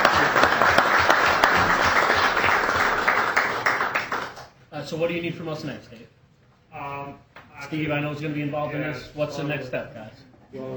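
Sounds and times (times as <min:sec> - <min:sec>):
applause from meeting attendees: 0:00.0 - 0:04.5
speech: 0:04.9 - 0:10.7.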